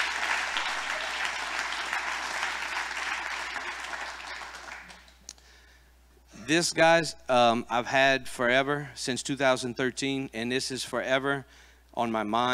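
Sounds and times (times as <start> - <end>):
audience clapping as a clap offering: 0.0 - 5.3
speech: 6.5 - 12.5.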